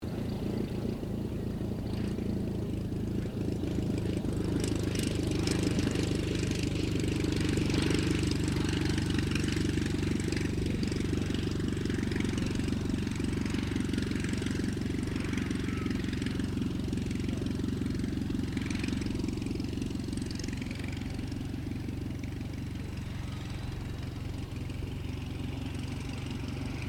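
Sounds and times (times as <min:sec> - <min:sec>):
Ryan STM-S2 aircraft landing: 0:00.0 - 0:26.8.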